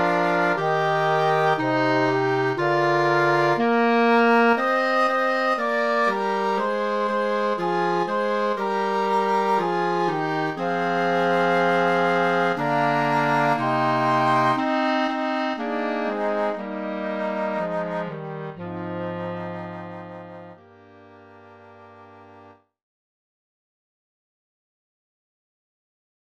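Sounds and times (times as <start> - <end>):
flutes: 0.0 - 2.5, 4.2 - 20.6
clarinet: 0.0 - 22.7.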